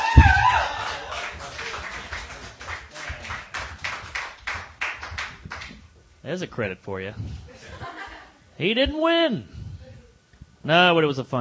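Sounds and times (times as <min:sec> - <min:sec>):
audience applause: 0:00.0 - 0:05.8
speech: 0:06.3 - 0:07.5, 0:08.6 - 0:09.6, 0:10.6 - 0:11.3
laughter: 0:07.5 - 0:08.4.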